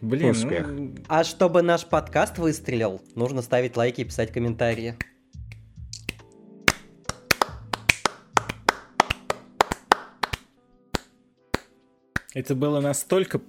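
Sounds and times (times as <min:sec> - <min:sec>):
speech: 0:00.0 - 0:05.1, 0:12.4 - 0:13.4
slow sarcastic hand clapping: 0:05.0 - 0:12.4.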